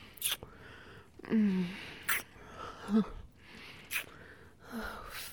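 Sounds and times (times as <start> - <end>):
wet noises: 0.0 - 0.5, 1.7 - 4.3.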